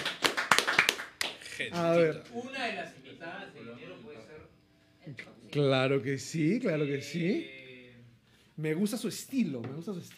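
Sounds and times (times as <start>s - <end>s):
applause: 0.0s - 1.6s
speech: 1.6s - 7.6s, 8.6s - 10.1s.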